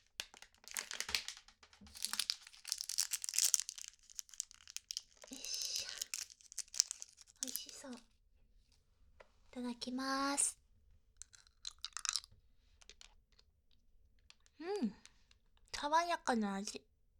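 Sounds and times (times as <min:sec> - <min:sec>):
crinkly wrapper of a lemon-flavoured black tea hard candy being opened: 0:00.0 - 0:08.0, 0:11.2 - 0:13.4
speech: 0:09.6 - 0:10.6, 0:15.9 - 0:16.9.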